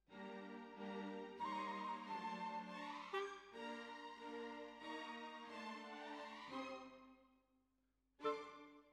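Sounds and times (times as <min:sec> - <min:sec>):
bassoon: 0:00.5 - 0:07.0.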